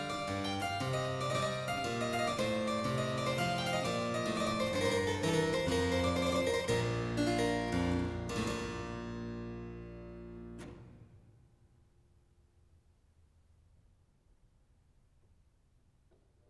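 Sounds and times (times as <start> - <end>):
harpsichord courante in C major: 0.0 - 9.9.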